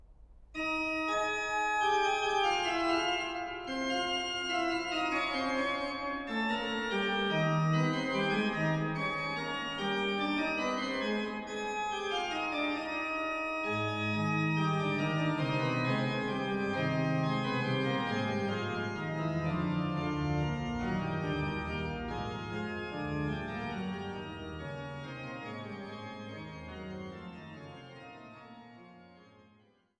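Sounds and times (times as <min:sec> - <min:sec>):
organ fugue non troppo allegro: 0:00.6 - 0:29.2.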